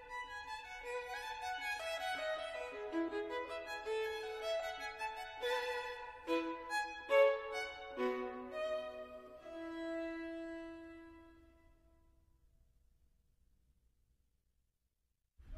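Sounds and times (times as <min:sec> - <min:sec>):
violin: 0:00.0 - 0:11.8.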